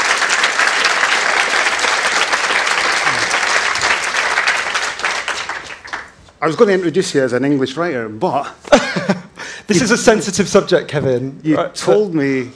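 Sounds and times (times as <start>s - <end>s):
audience applause: 0.0s - 6.2s
speech: 6.4s - 12.5s
laughter: 8.6s - 10.2s.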